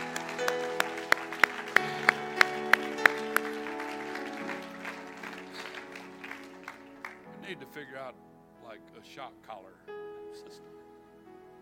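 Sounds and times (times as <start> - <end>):
audience clapping and cheering: 0.0 - 7.3
speech: 7.5 - 10.9.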